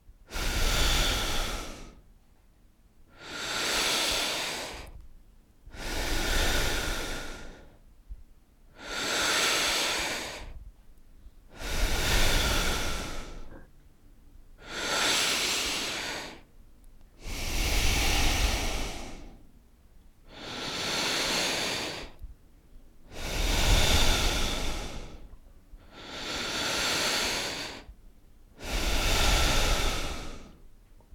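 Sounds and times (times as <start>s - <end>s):
breathing: 0.2s - 2.1s, 3.1s - 5.0s, 5.7s - 7.8s, 8.7s - 13.7s, 14.6s - 16.5s, 17.2s - 19.6s, 20.3s - 22.3s, 23.1s - 30.7s.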